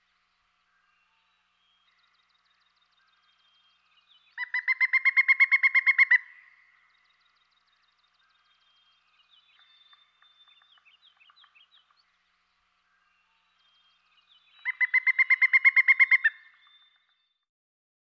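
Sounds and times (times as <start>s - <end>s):
pileated woodpecker: 1.9s - 7.1s, 8.8s - 12.2s, 12.9s - 17.3s.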